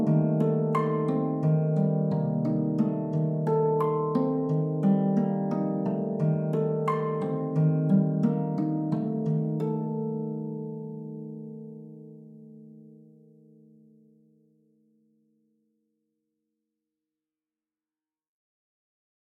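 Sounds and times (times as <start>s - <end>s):
harp: 0.0s - 14.4s.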